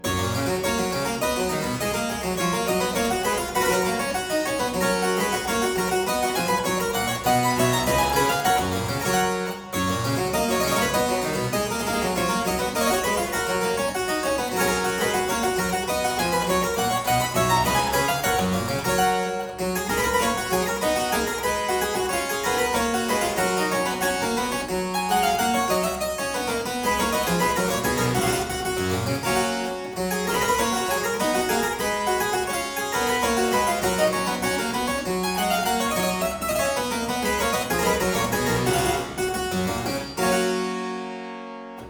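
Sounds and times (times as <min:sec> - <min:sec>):
harpsichord aria in G major: 0:00.0 - 0:41.8.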